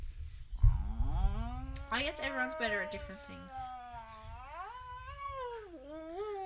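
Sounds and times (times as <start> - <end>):
voice imitating an angry cat: 0.7 - 5.3
speech: 2.0 - 3.8.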